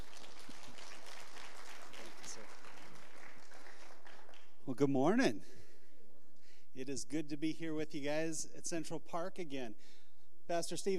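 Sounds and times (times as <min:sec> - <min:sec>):
congregation applause at an outdoor service in Central Park: 0:00.0 - 0:04.6
speech: 0:04.7 - 0:05.6, 0:06.8 - 0:10.9.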